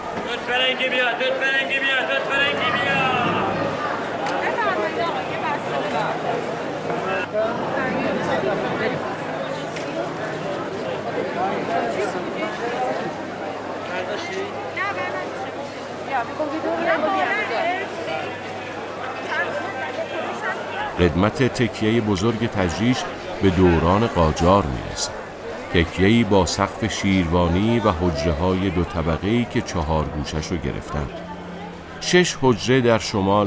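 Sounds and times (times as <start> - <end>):
bazaar crowd chatter: 0.0 - 33.4
speech: 0.3 - 3.2, 13.9 - 15.4, 16.1 - 18.5, 19.4 - 31.2, 32.0 - 33.4
fruit vendors calling: 20.9 - 33.4.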